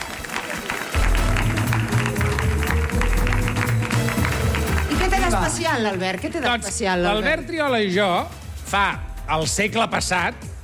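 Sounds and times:
audience applause: 0:00.0 - 0:06.8
speech: 0:05.6 - 0:10.5.

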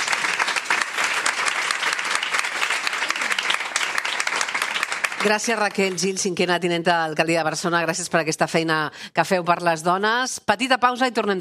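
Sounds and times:
audience applause: 0:00.0 - 0:06.2
speech: 0:05.2 - 0:11.3.

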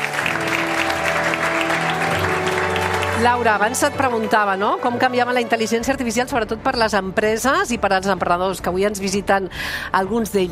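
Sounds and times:
audience applause: 0:00.0 - 0:05.5
speech: 0:03.2 - 0:10.5.

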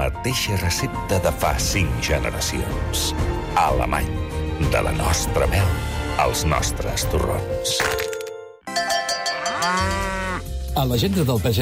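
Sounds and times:
speech: 0:00.0 - 0:08.1, 0:10.8 - 0:11.6
dairy cow mooing: 0:09.0 - 0:10.6.

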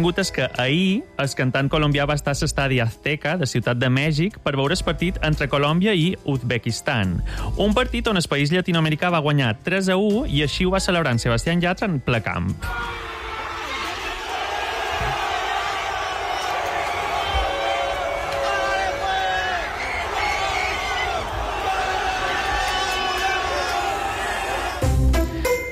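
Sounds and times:
speech: 0:00.0 - 0:13.0
crowd of men shouting and cheering after a match: 0:12.6 - 0:25.0.

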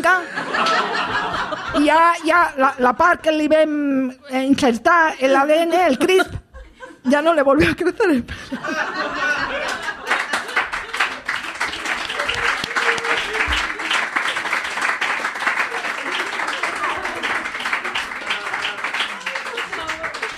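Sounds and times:
speech: 0:00.0 - 0:00.6, 0:01.7 - 0:06.4, 0:07.0 - 0:09.4
laughter: 0:00.1 - 0:02.3, 0:05.3 - 0:07.1, 0:08.3 - 0:20.3
timid applause: 0:09.3 - 0:20.3.

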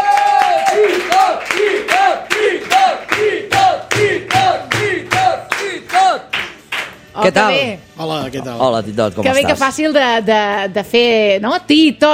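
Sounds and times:
crowd chanting and cheering: 0:00.0 - 0:06.3
audience clapping in steady rhythmic beat: 0:00.0 - 0:07.2
speech: 0:07.2 - 0:12.1.

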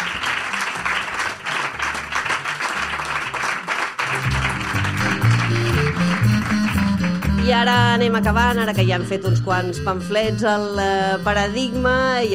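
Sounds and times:
audience applause: 0:00.0 - 0:07.4
musical tune with low notes: 0:04.0 - 0:12.3
speech: 0:07.5 - 0:12.3.

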